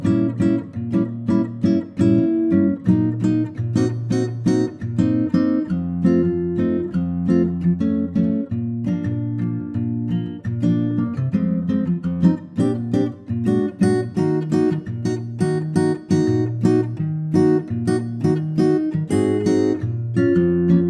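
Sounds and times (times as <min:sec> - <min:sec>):
acoustic guitar in B flat: 0:00.0 - 0:20.8.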